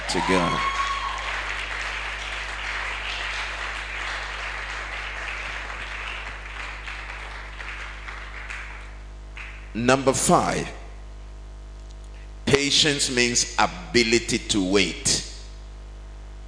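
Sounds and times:
audience clapping: 0.0s - 9.8s
constant low hum: 0.0s - 16.4s
speech: 0.1s - 0.8s, 9.8s - 10.8s, 12.7s - 15.3s.

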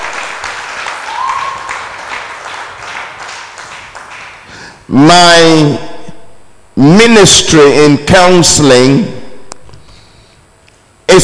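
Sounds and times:
audience clapping: 0.0s - 4.8s
cheering whoop: 0.8s - 2.1s
speech: 4.9s - 5.9s, 6.8s - 9.2s.

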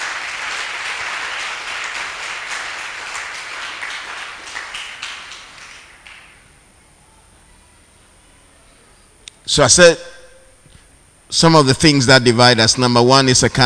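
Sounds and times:
audience clapping: 0.0s - 6.5s
speech: 9.5s - 10.1s, 11.3s - 13.6s.

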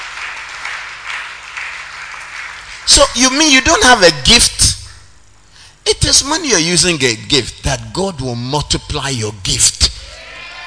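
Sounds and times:
congregation clapping rhythmically during a church service: 0.0s - 3.6s
speech: 2.9s - 4.7s, 5.9s - 9.9s.

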